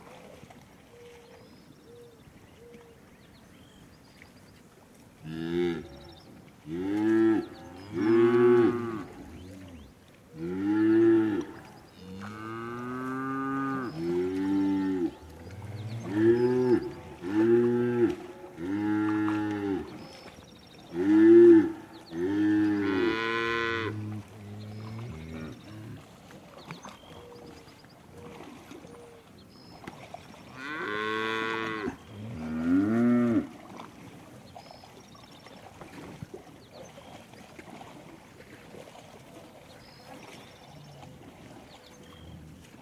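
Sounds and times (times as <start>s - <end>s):
cows mooing: 5.2s - 20.0s, 20.9s - 26.0s, 30.5s - 33.6s.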